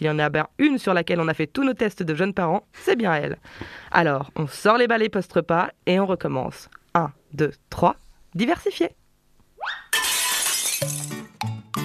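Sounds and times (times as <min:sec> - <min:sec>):
speech: 0:00.0 - 0:09.0
dishes breaking: 0:09.9 - 0:11.3
glass shattering: 0:09.9 - 0:11.3.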